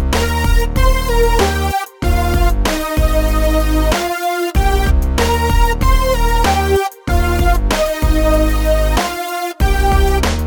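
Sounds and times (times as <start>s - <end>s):
simple melodies in E-flat major: 0.2s - 10.2s.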